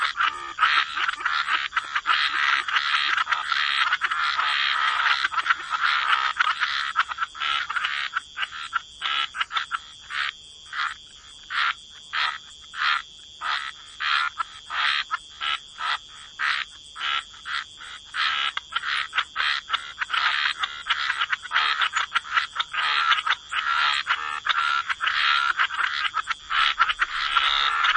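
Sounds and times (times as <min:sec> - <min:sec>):
frog chorus croaking: 0:00.0 - 0:27.9.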